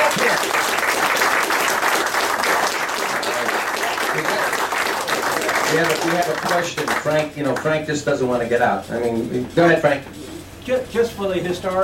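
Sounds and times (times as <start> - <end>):
audience applause: 0.0 - 7.8
speech: 5.7 - 11.8.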